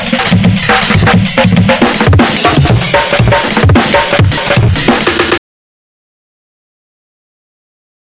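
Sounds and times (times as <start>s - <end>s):
drums: 0.0s - 5.4s.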